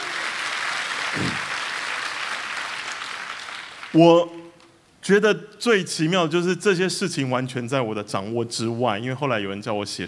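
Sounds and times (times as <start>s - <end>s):
audience clapping: 0.0s - 4.0s
speech: 3.9s - 4.4s, 5.0s - 10.0s.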